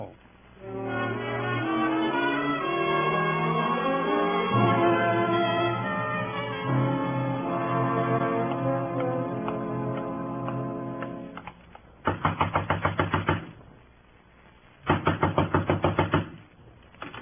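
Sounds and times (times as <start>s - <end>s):
low sustained musical tone: 0.6s - 11.5s
rapid loud knocking on a door: 12.1s - 13.5s, 14.9s - 16.4s.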